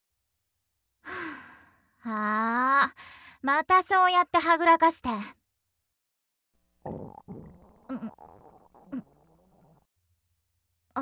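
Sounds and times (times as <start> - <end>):
speech: 3.4 - 5.4, 6.8 - 8.3
stomach rumbling: 6.9 - 9.9.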